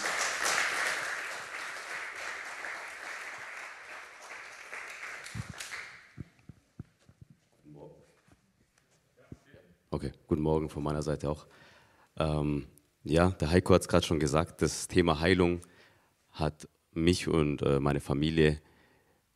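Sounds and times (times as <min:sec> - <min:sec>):
audience applauding in welcome: 0:00.0 - 0:06.4
speech: 0:10.0 - 0:15.7, 0:16.4 - 0:18.7.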